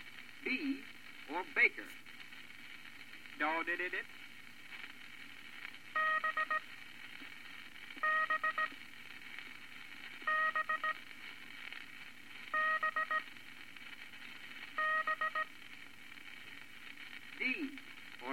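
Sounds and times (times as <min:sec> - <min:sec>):
steady hiss: 0:00.0 - 0:18.3
speech: 0:00.4 - 0:02.0, 0:03.4 - 0:04.2, 0:06.0 - 0:06.8, 0:08.0 - 0:08.9, 0:10.3 - 0:11.1, 0:17.4 - 0:18.3
International Morse code characters as short high electronic beeps: 0:06.0 - 0:06.6, 0:08.0 - 0:08.7, 0:10.3 - 0:11.0, 0:12.5 - 0:13.3, 0:14.8 - 0:15.5.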